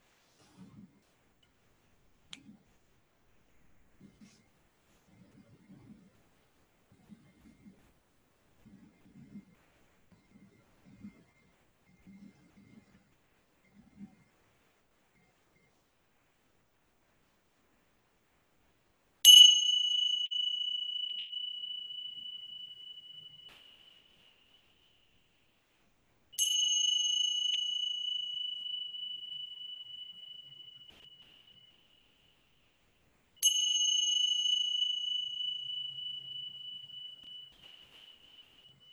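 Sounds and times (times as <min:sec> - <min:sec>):
meditation closing bell: 0:19.3 - 0:25.6, 0:26.2 - 0:38.9.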